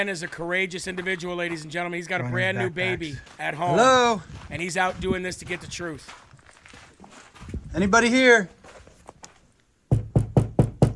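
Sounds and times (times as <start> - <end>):
speech: 0.0 - 6.2, 7.7 - 8.6
knocking on a door: 9.9 - 10.9.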